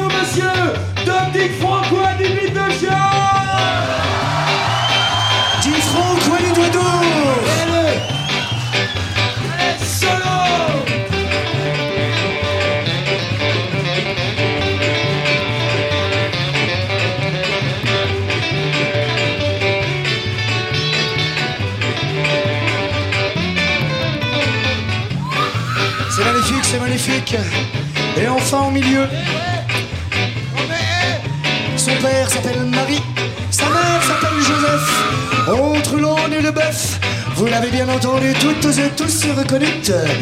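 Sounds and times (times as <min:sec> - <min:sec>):
audience cheering, whooping and shouting: 0:00.0 - 0:27.7, 0:28.8 - 0:40.2
pulsing music with a steady bass rhythm: 0:00.0 - 0:40.2
speech: 0:00.3 - 0:04.0, 0:27.0 - 0:29.6, 0:34.1 - 0:40.2.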